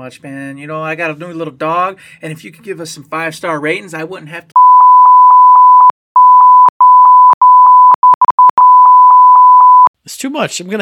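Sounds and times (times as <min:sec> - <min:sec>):
speech: 0:00.0 - 0:04.5, 0:10.1 - 0:10.8
repeated electronic beep tone: 0:04.6 - 0:09.9.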